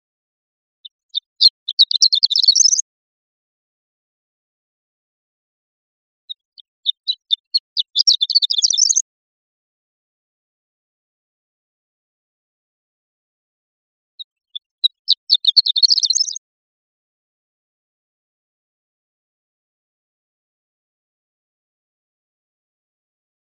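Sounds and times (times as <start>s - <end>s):
Horned lark tinkling song: 0.8s - 2.8s, 6.5s - 9.0s, 14.2s - 16.4s.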